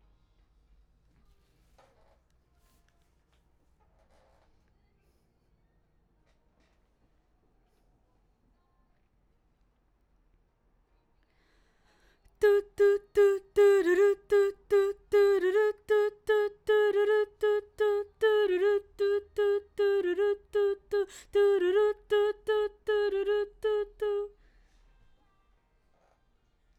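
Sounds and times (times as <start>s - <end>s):
background vocals: 12.3s - 24.4s.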